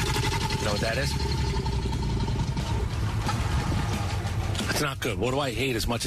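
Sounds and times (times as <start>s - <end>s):
alligator growl: 0.0s - 4.6s
speech: 0.7s - 1.4s, 4.8s - 6.0s.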